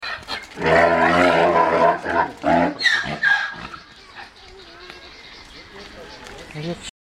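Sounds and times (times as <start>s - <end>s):
zebra braying: 0.2s - 5.2s.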